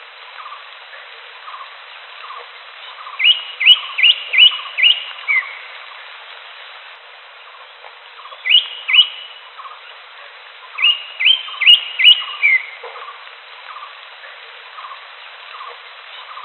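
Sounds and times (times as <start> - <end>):
wild greater green leafbird song of upswept whistles: 1.4 - 5.8, 8.1 - 10.0, 10.6 - 14.0, 14.7 - 16.4.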